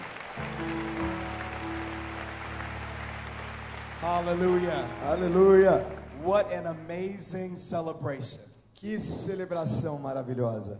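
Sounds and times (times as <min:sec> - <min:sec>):
audience clapping hands in praise: 0:00.0 - 0:07.1
sustained low keyboard or organ tones: 0:00.0 - 0:08.0
speech: 0:04.0 - 0:10.7.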